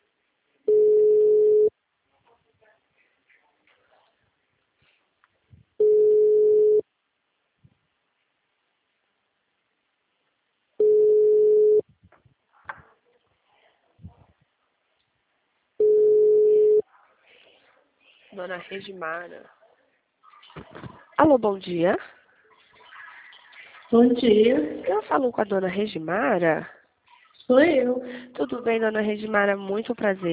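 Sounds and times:
telephone ringback tone: 0.7 - 1.7, 5.8 - 6.8, 10.8 - 11.8, 15.8 - 16.8
speech: 18.4 - 19.6, 20.6 - 22.2, 23.9 - 26.8, 27.5 - 30.3.

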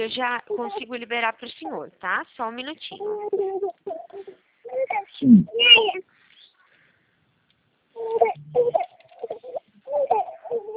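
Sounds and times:
speech: 0.0 - 6.1, 8.0 - 10.7
baby crying: 2.9 - 6.0, 8.0 - 10.7.

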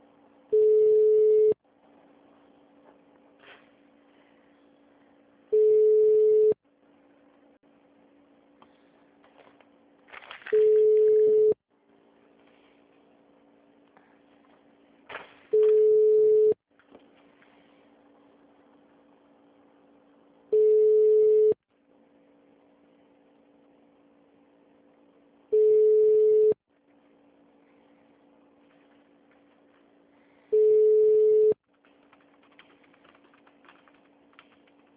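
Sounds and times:
telephone line beeps while a call is transferred: 0.5 - 1.6, 5.5 - 6.6, 10.5 - 11.6, 15.5 - 16.6, 20.5 - 21.6, 25.5 - 26.6, 30.5 - 31.6.

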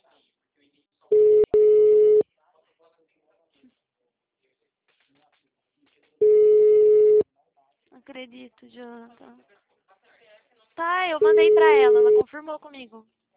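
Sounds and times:
telephone ringback tone of an unanswered call: 1.1 - 2.2, 6.2 - 7.2, 11.2 - 12.2
speech: 8.1 - 9.6, 10.8 - 13.2.

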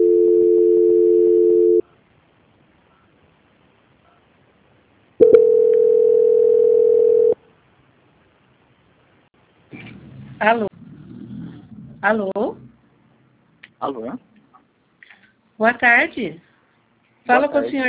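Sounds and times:
telephone tone while a call is transferred: 0.0 - 1.8, 5.2 - 7.4
speech: 10.4 - 10.7, 12.0 - 12.6, 13.8 - 14.3, 15.6 - 16.5, 17.3 - 17.8.

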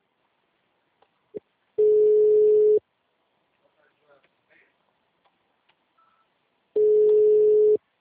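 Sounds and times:
phone ringtone: 1.8 - 2.8, 6.8 - 7.8.

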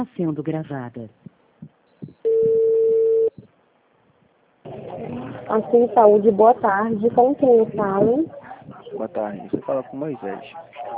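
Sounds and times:
speech: 0.0 - 1.3, 4.9 - 8.4, 9.0 - 10.7
telephone line tone while a call to a health-plan service line is transferred: 2.2 - 3.4.

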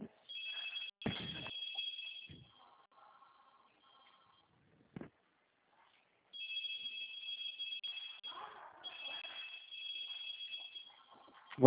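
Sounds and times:
telephone ringing: 0.3 - 2.8, 6.4 - 11.5.

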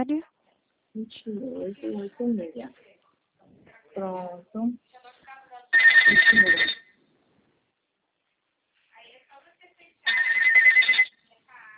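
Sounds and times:
speech: 0.0 - 0.3, 1.0 - 2.9, 4.0 - 5.0, 6.1 - 6.8
phone ringtone ringing: 5.8 - 7.0, 10.1 - 11.2.

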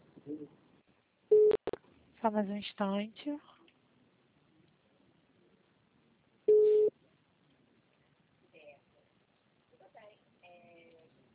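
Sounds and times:
speech: 0.3 - 0.6, 2.2 - 3.5
call-waiting beep for an incoming phone call: 6.5 - 6.9.

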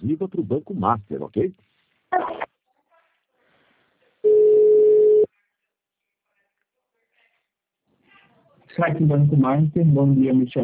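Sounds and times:
speech: 0.1 - 2.5, 8.8 - 10.6
telephone line tone during a call transfer to Banco Master: 4.2 - 5.3.

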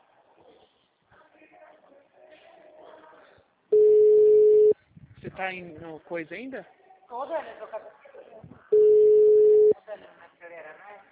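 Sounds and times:
telephone tone while a call is placed: 3.8 - 4.8, 8.8 - 9.8
speech: 5.4 - 8.0.

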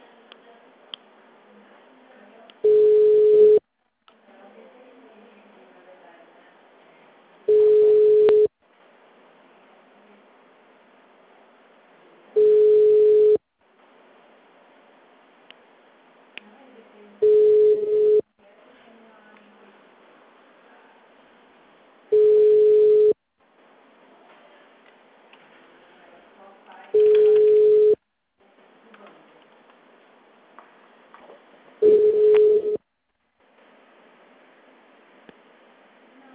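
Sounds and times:
telephone busy signal: 2.6 - 3.6, 7.5 - 8.5, 12.4 - 13.4, 17.2 - 18.3, 22.1 - 23.2, 27.0 - 28.0, 31.8 - 32.8.

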